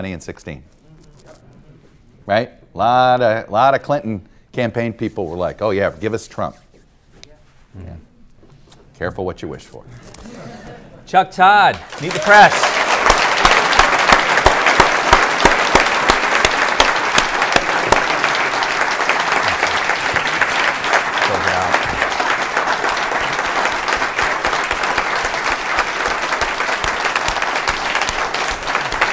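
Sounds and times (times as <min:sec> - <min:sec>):
speech: 0:00.0 - 0:00.8, 0:02.3 - 0:06.6, 0:07.7 - 0:08.1, 0:09.0 - 0:12.7
sustained audience applause: 0:11.7 - 0:29.1.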